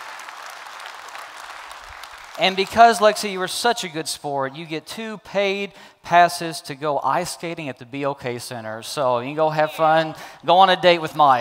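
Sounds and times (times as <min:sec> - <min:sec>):
audience applause: 0:00.0 - 0:03.5
speech: 0:02.4 - 0:11.3.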